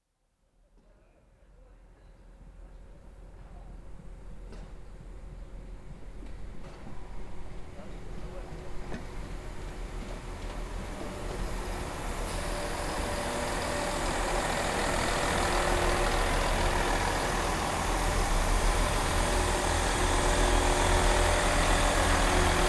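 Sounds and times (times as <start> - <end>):
train passing left to right: 9.2 - 22.6.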